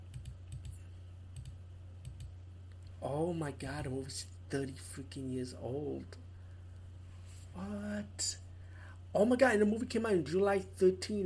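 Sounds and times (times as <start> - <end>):
computer keyboard clicks while looking up a movie: 0.0 - 0.8, 1.4 - 2.3
low steady hum: 0.0 - 11.2
speech: 3.0 - 6.2, 7.6 - 8.4, 9.2 - 11.2.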